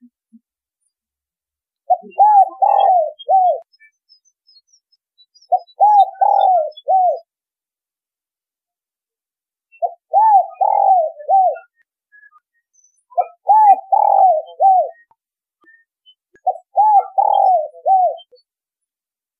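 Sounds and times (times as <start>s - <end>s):
spotted dove cooing: 1.9s - 3.6s, 5.5s - 7.2s, 9.8s - 11.8s, 13.2s - 15.0s, 16.4s - 18.4s.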